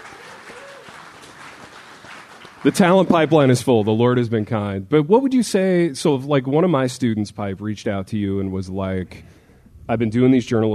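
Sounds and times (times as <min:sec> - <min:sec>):
audience clapping: 0:00.0 - 0:03.8
speech: 0:02.6 - 0:10.7.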